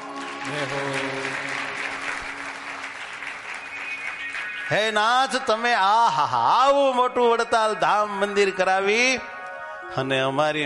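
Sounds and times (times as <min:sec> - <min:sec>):
devotional crowd clapping at the Vadtal Dham temple: 0:00.0 - 0:06.4
speech: 0:00.4 - 0:01.6, 0:04.7 - 0:09.3, 0:09.9 - 0:10.6.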